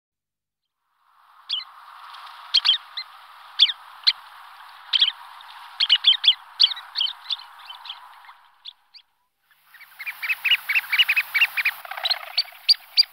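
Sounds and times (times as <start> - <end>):
sandpipers chirping: 1.4 - 13.1.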